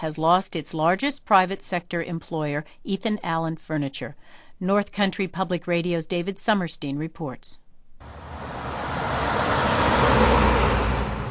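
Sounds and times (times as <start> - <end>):
speech: 0.0 - 8.4
light traffic on Boonville's Main Street: 8.0 - 11.2.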